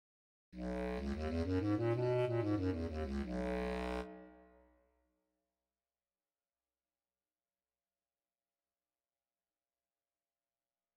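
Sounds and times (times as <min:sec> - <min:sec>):
bass clarinet: 0:00.6 - 0:04.5.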